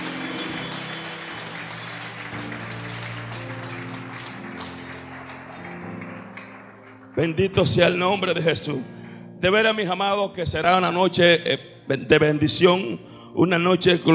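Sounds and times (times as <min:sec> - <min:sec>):
applause: 0:00.0 - 0:08.4
speech: 0:07.2 - 0:14.1.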